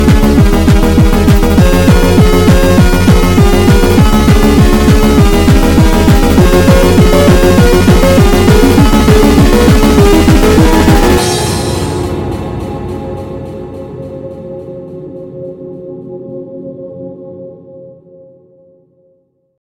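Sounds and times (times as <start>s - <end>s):
background music: 0.0s - 18.6s.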